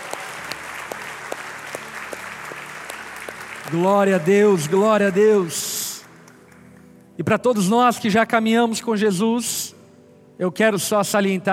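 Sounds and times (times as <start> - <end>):
church audience applause: 0.0 - 6.6
speech: 3.7 - 5.7, 7.2 - 9.8, 10.4 - 11.5.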